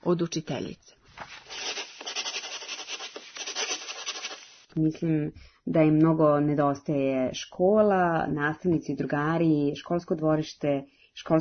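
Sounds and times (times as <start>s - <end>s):
speech: 0.0s - 1.8s, 4.8s - 11.3s
eraser rubbing on paper: 1.2s - 4.7s.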